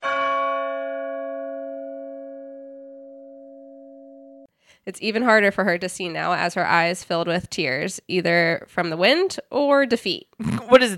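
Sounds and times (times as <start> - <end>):
deep clock tower bell tolling: 0.0 - 4.4
speech: 4.8 - 10.9.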